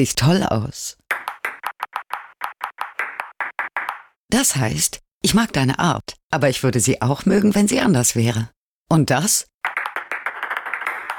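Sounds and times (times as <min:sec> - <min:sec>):
speech: 0:00.0 - 0:01.0, 0:04.3 - 0:09.5
table tennis ball bouncing in Morse code pattern: 0:01.1 - 0:04.2, 0:09.6 - 0:11.1.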